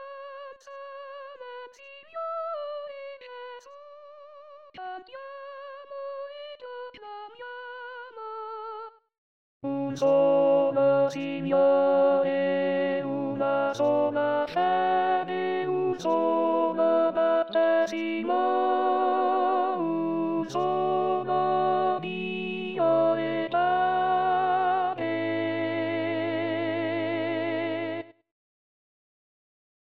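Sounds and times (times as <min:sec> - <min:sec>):
contraltos singing: 0:09.7 - 0:28.0.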